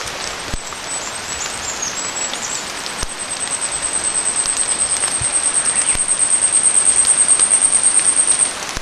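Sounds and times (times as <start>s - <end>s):
short-tailed warbler: 0.2s - 8.7s.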